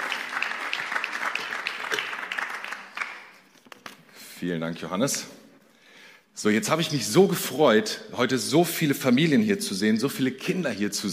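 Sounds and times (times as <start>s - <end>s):
applause: 0.0s - 4.0s
speech: 4.4s - 5.4s, 6.4s - 11.1s.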